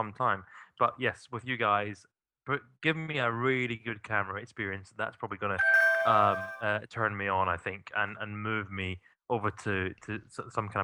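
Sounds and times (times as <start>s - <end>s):
speech: 0.0s - 10.8s
call connection timing out alert tone: 5.6s - 6.7s.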